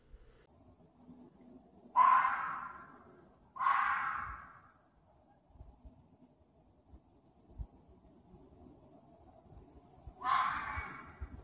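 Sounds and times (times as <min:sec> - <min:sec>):
fox screech: 0:03.6 - 0:04.6, 0:10.2 - 0:11.2.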